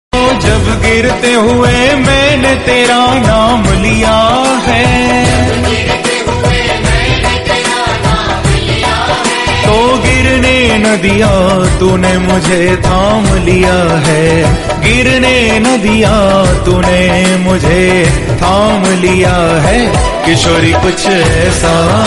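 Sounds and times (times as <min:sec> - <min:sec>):
Hindi bhakti devotional song: 0:00.1 - 0:22.0.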